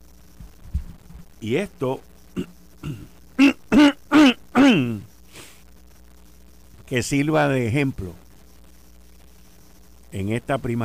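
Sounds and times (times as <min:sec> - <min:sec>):
speech: 0:01.4 - 0:03.2, 0:04.7 - 0:05.1, 0:06.9 - 0:08.2, 0:10.1 - 0:10.8
person imitating throat clearing: 0:02.4 - 0:05.0.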